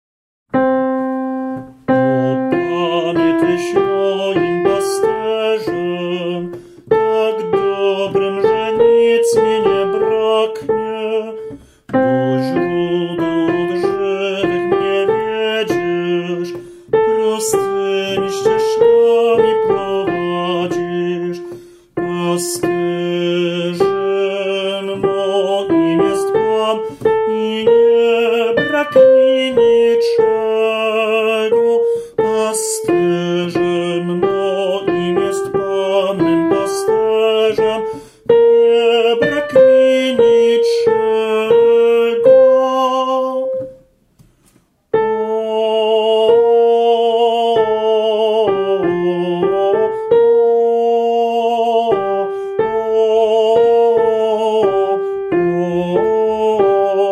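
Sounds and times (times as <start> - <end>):
tenor singing: 0.5 - 43.9, 44.9 - 57.1.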